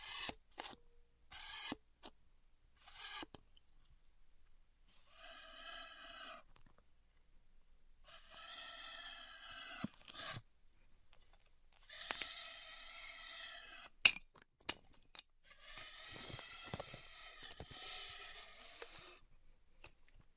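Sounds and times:
styrofoam cut with a heated tool: 0:00.0 - 0:01.8, 0:02.8 - 0:03.4, 0:04.9 - 0:06.5, 0:08.1 - 0:10.4, 0:11.8 - 0:14.0, 0:15.4 - 0:19.2.

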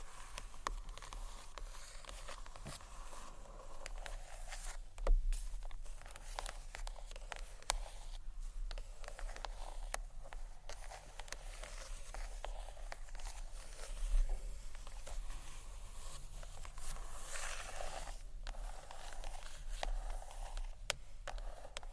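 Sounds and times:
gentle scratchy tapping on books: 0:00.0 - 0:21.9.

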